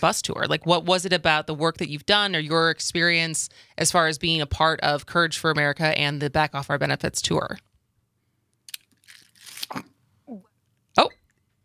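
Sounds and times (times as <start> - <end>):
speech: 0.0 - 7.7, 9.7 - 10.4, 11.0 - 11.2
person coughing after something went down the wrong pipe: 9.7 - 10.5.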